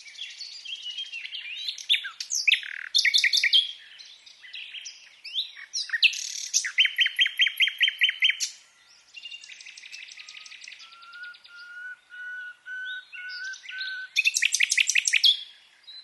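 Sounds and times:
common nightingale (Luscinia megarhynchos) song of sharp chirps, trills and whistles: 0:00.0 - 0:16.0.

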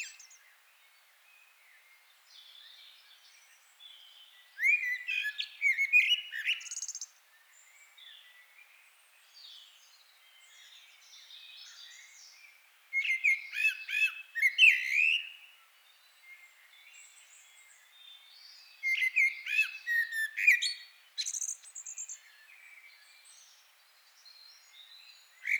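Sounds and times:
common blackbird singing: 0:00.0 - 0:00.5, 0:02.3 - 0:07.1, 0:10.4 - 0:15.5, 0:16.2 - 0:23.6, 0:24.2 - 0:25.5.

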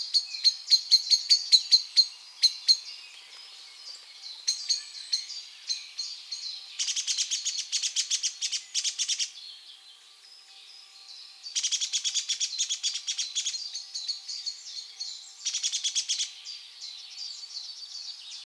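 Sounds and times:
Eurasian blackbird chink calls: 0:00.0 - 0:09.7, 0:11.4 - 0:18.2.

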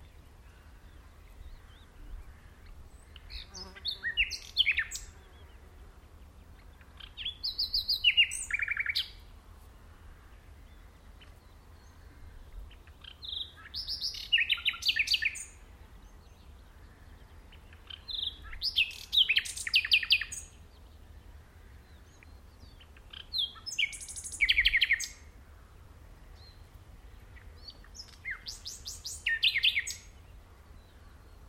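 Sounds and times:
background hiss: 0:00.0 - 0:31.4
common nightingale singing: 0:02.9 - 0:05.3, 0:06.8 - 0:09.3, 0:12.7 - 0:16.6, 0:17.6 - 0:20.6, 0:22.0 - 0:25.3, 0:27.4 - 0:31.4.

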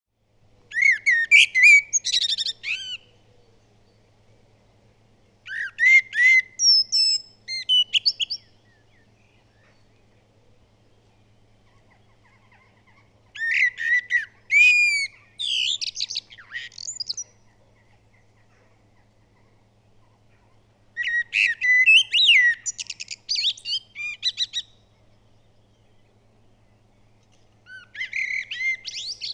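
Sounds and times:
common blackbird song: 0:00.4 - 0:29.3.

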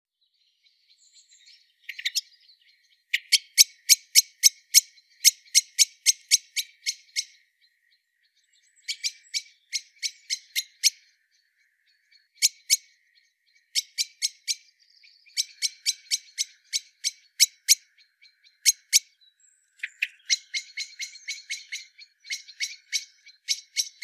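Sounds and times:
Eurasian blackbird chinking calls: 0:00.6 - 0:24.0.

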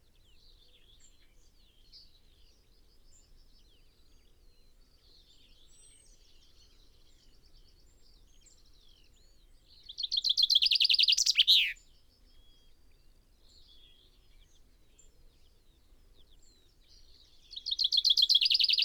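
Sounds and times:
common chaffinch Fringilla coelebs singing: 0:09.9 - 0:11.8, 0:17.5 - 0:18.8.

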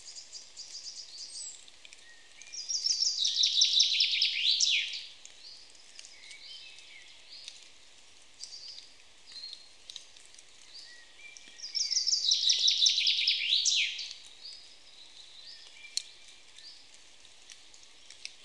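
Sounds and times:
Common chaffinch Fringilla coelebs singing cascading phrases: 0:00.0 - 0:07.6, 0:10.6 - 0:16.9.

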